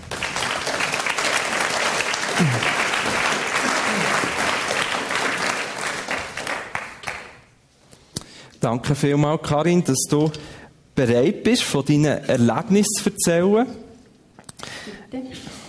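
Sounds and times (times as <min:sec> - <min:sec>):
audience applause: 0:00.0 - 0:07.5
speech: 0:02.4 - 0:02.8, 0:08.6 - 0:13.8.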